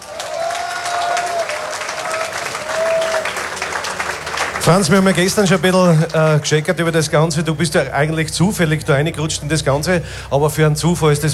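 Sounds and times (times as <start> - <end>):
audience applause: 0.0 - 7.1
speech: 4.6 - 11.3.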